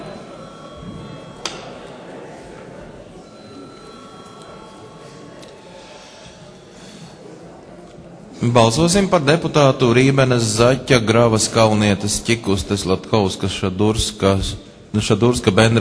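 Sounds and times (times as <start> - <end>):
parliament chamber voting bell ringing: 0.0 - 7.1
low murmur of voices: 0.0 - 15.7
speech: 8.4 - 15.7.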